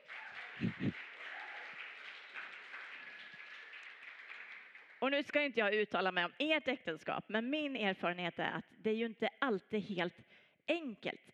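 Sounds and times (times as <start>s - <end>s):
applause: 0.0s - 5.8s
speech: 0.6s - 1.1s, 5.1s - 11.3s.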